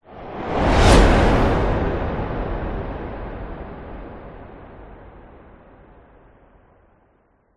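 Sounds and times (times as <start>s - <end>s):
whoosh: 0.1s - 5.6s.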